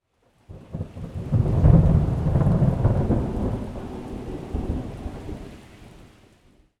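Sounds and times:
thunder: 0.5s - 5.6s.

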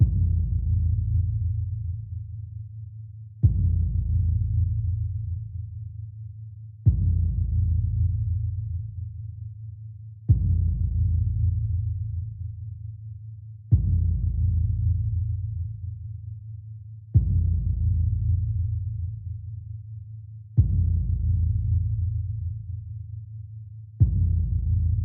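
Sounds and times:
bass drum: 0.0s - 2.0s, 3.4s - 5.5s, 6.9s - 9.0s, 10.3s - 12.4s, 13.7s - 15.8s, 17.2s - 19.3s, 20.6s - 22.8s, 24.0s - 25.0s.

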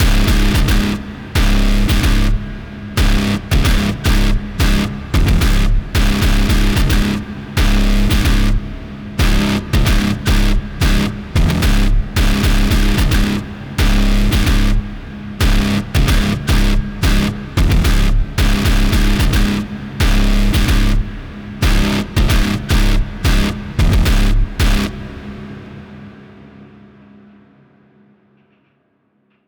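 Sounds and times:
boss music guitar loop with hall reverb: 0.0s - 2.4s, 3.0s - 8.6s, 9.2s - 25.0s.

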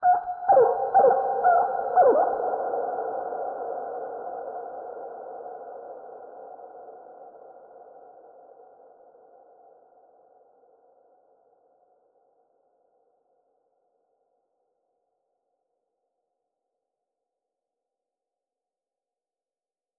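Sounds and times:
animals: 0.0s - 2.9s.

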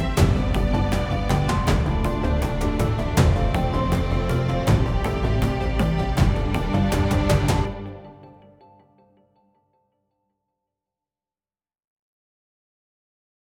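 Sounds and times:
orchestral loading music at 80 BPM: 0.0s - 8.8s.

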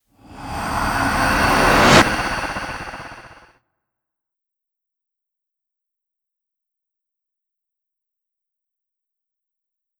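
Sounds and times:
dark wind sound: 0.2s - 3.5s.

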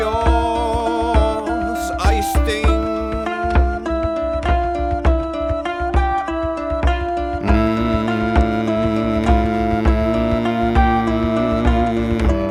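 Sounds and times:
singing voice: 0.0s - 4.4s, 7.4s - 12.4s
drum: 0.0s - 5.3s, 7.4s - 12.4s
flute: 0.0s - 12.4s
kitara: 0.0s - 12.4s.

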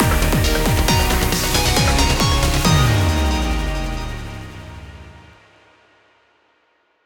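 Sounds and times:
battle victory music: 0.0s - 5.4s.

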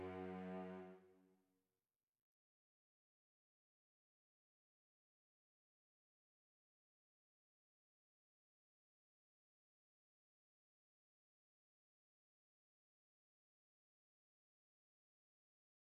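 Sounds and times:
cellos playing legato on D: 0.0s - 1.0s.

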